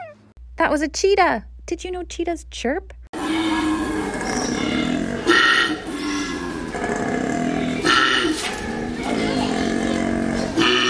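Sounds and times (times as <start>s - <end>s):
speech: 0.6s - 3.0s
male koala bellowing in mating season: 3.1s - 10.8s.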